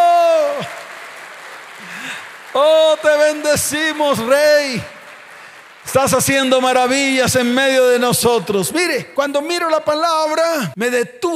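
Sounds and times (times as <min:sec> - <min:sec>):
crowd applauding: 0:00.0 - 0:08.5
speech: 0:02.6 - 0:05.0, 0:05.9 - 0:11.3.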